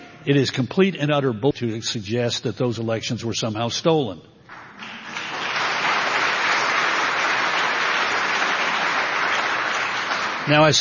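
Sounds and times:
speech: 0.2s - 4.3s, 10.5s - 10.8s
audience applause: 4.5s - 10.8s.

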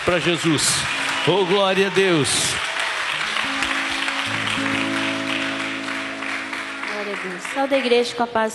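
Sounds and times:
speech: 0.0s - 2.7s, 7.1s - 8.5s
audience clapping hands: 0.0s - 8.5s.

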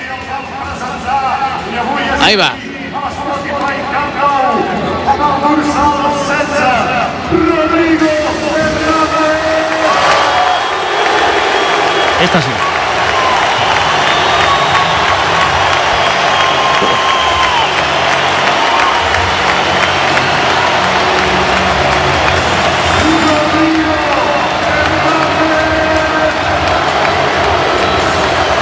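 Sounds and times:
stadium crowd standing ovation with applause and cheering: 0.0s - 28.6s
speech: 1.8s - 8.4s, 12.2s - 12.7s
crowd whistles: 9.9s - 18.9s.

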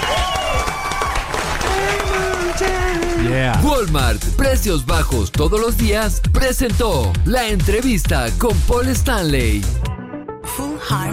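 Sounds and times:
audience applause: 0.0s - 3.6s
speech: 3.3s - 9.9s.

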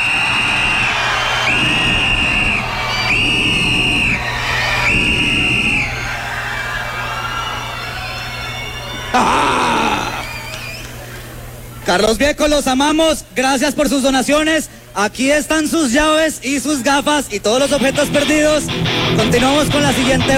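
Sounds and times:
large crowd cheering and screaming: 0.0s - 11.1s
shrill whistles: 0.0s - 11.2s
speech: 11.9s - 20.3s.

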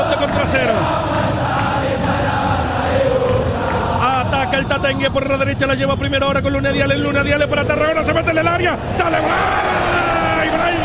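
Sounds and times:
football crowd singing during a match: 0.0s - 5.4s, 8.8s - 10.8s
speech: 4.8s - 10.1s.

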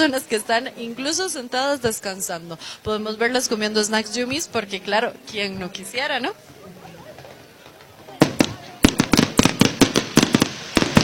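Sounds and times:
speech: 0.0s - 6.5s
loud gunpowder firecracker explosion: 8.1s - 11.0s.

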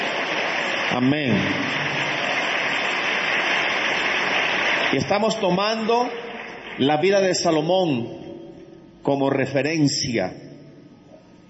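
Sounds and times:
audience applauding: 0.0s - 7.4s
speech: 0.9s - 2.2s, 4.9s - 6.2s, 6.8s - 8.2s, 9.0s - 10.4s.

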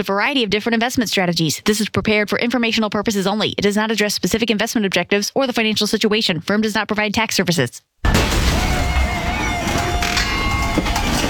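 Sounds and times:
speech: 0.0s - 8.4s
garage door: 8.0s - 11.2s.

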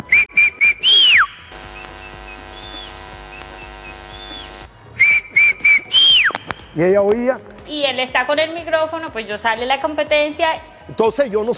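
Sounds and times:
person whistling: 0.0s - 1.5s, 4.2s - 6.8s
speech: 6.8s - 11.5s.

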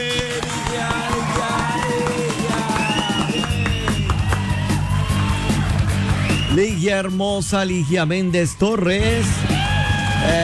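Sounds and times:
applause for a contest winner: 0.0s - 6.7s
speech: 6.6s - 9.5s, 10.2s - 10.4s.

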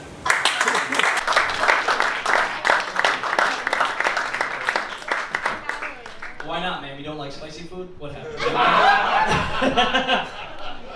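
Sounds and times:
crowd clapping: 0.2s - 6.8s
laughter: 0.4s - 6.2s, 8.2s - 10.9s
speech: 9.7s - 10.4s.

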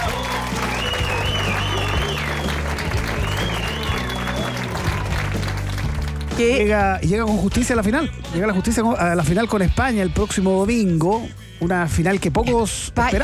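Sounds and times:
applause: 0.0s - 6.7s
speech: 6.4s - 13.2s.

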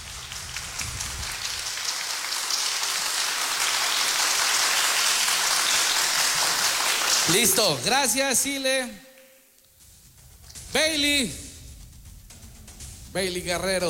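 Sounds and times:
applause: 0.0s - 8.1s
speech: 7.3s - 9.1s, 10.8s - 11.4s, 13.2s - 13.8s.

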